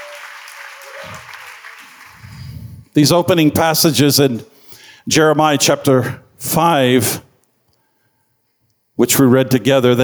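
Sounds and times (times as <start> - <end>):
audience hand clapping: 0.0 - 3.0
speech: 3.0 - 7.3, 9.0 - 10.0.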